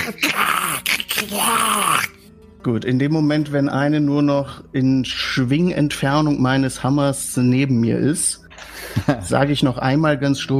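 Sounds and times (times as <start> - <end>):
speech: 0.1 - 10.5
voice imitating aggressive lizard creatures roaring: 0.3 - 2.2
laughter: 8.7 - 9.4.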